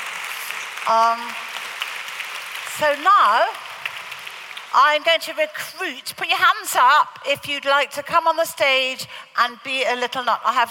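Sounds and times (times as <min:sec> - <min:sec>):
audience clapping at a children's stage show: 0:00.0 - 0:05.0
speech: 0:00.8 - 0:01.5, 0:02.8 - 0:03.6, 0:04.7 - 0:10.7.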